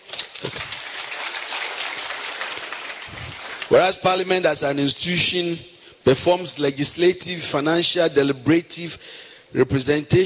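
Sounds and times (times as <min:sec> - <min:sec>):
audience clapping: 0:00.0 - 0:04.4
speech: 0:03.7 - 0:10.2.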